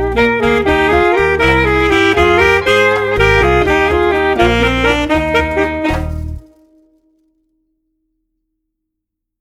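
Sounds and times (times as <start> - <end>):
full saxophone music: 0.0 - 7.2.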